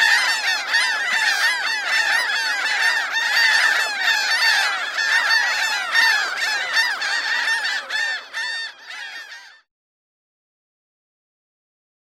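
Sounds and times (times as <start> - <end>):
gulls calling in a large flock: 0.0 - 9.7.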